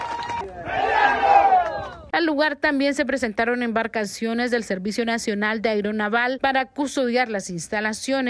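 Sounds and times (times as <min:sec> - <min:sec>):
protesting crowd shouting slogans against the mining company: 0:00.5 - 0:02.0
speech: 0:02.7 - 0:08.2.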